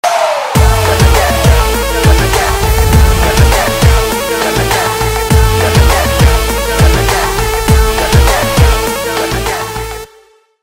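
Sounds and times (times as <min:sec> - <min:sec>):
music: 0:00.0 - 0:10.6.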